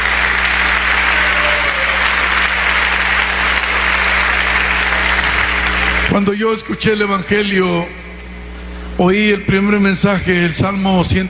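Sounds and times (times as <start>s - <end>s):
congregation applauding during a church service: 0.0s - 6.4s
speech: 6.1s - 8.0s, 9.0s - 11.2s.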